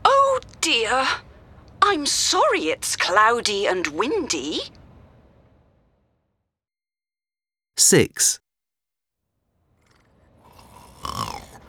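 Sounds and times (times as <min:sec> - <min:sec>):
speech: 0:00.6 - 0:04.8, 0:07.8 - 0:08.4
sleeping person snoring: 0:09.9 - 0:11.6.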